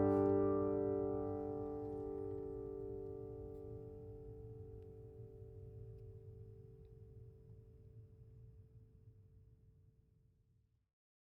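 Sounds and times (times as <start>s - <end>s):
1930 Martin OM 28 steel-string guitar of Brazilian rosewood and Adirondack spruce: 0.0s - 3.1s.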